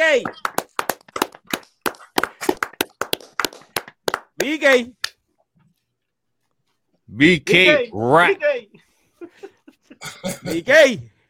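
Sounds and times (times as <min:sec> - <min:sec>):
speech: 0:00.1 - 0:00.6, 0:04.4 - 0:05.0, 0:07.1 - 0:11.1
clapping: 0:00.1 - 0:05.2.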